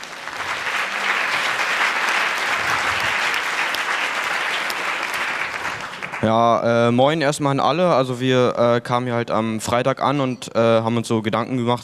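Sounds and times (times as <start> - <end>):
audience applause: 0.0 - 6.4
speech: 6.2 - 11.8.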